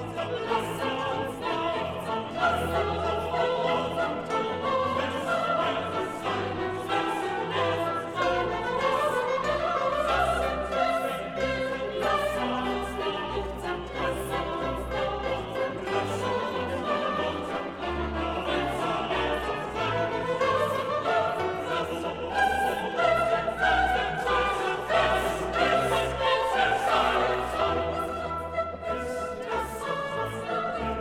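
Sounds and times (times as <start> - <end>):
soprano voices singing: 0.0 - 31.0.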